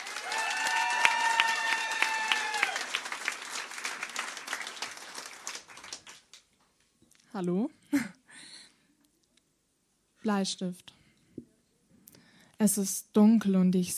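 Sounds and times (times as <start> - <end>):
cheers and whoops: 0.0 - 3.2
audience clapping: 0.0 - 6.6
speech: 7.4 - 8.2, 10.2 - 11.0, 12.6 - 13.9.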